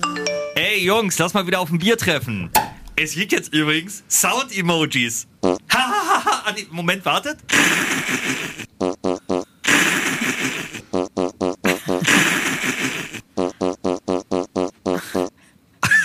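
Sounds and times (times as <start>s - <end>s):
speech: 0.7s - 8.6s
fart sound effects: 7.5s - 15.3s.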